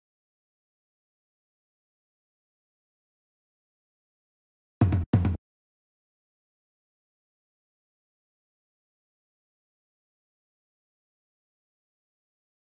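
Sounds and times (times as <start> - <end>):
drums: 4.8 - 5.4.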